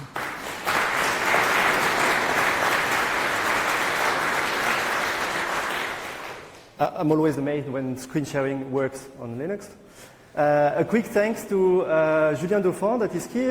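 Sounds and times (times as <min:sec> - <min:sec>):
audience applause: 0:00.0 - 0:06.6
speech: 0:06.8 - 0:13.4.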